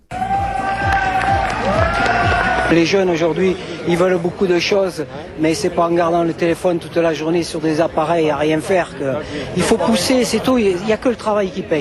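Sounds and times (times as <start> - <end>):
crowd cheering and shouting at a bodybuilding championship in New Caledonia: 0.0 - 4.4
speech: 2.7 - 11.7.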